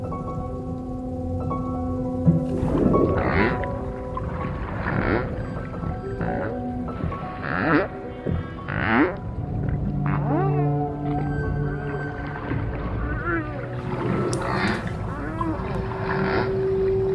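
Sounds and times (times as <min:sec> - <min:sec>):
low hum: 0:00.0 - 0:17.1
whale calf cries: 0:06.0 - 0:17.1.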